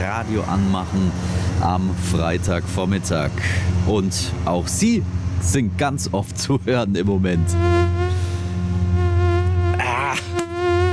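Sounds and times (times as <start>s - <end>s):
speech: 0.0s - 7.9s
high-pitched wavering warble: 7.3s - 10.9s
mosquito whine: 7.3s - 10.9s.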